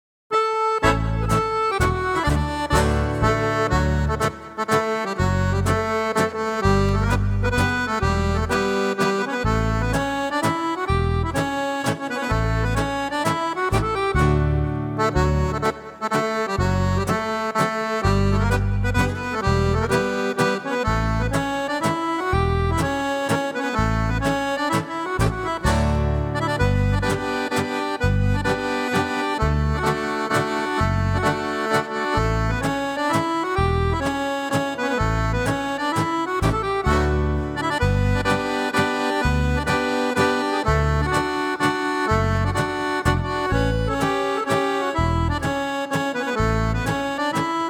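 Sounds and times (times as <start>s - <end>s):
polska dance tune: 0.3s - 47.6s.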